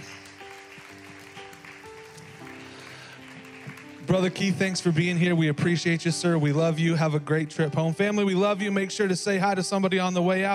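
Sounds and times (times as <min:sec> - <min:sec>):
audience round of applause: 0:00.0 - 0:04.9
sustained keyboard chords: 0:00.0 - 0:10.5
speech: 0:04.1 - 0:10.5.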